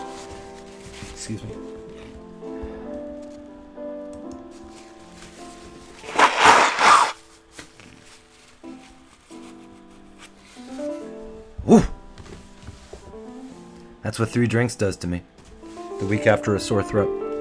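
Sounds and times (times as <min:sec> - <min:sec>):
speech: 0:01.2 - 0:01.7, 0:14.1 - 0:15.4, 0:16.0 - 0:17.3
person blowing nose: 0:06.0 - 0:07.3.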